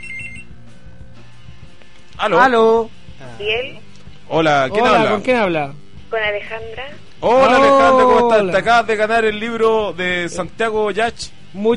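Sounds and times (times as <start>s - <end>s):
telephone ringing: 0.0s - 0.5s
speech: 2.2s - 11.7s.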